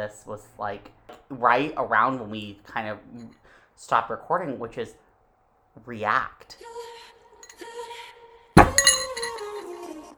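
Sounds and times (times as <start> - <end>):
speech: 0.0 - 5.0, 5.8 - 6.9
water bottle set down hard on a table: 8.6 - 9.4
faint handling clinks: 8.6 - 9.5.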